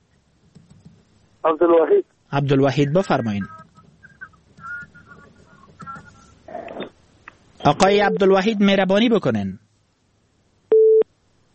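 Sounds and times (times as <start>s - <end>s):
speech: 1.4s - 3.6s, 7.6s - 9.6s
telephone busy tone after a call-in listener is disconnected: 10.7s - 11.0s.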